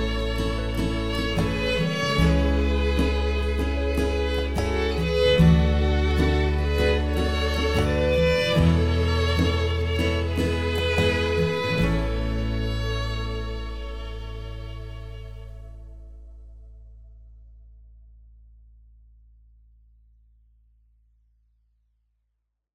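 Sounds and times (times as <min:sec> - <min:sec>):
instrumental music: 0:00.0 - 0:17.1.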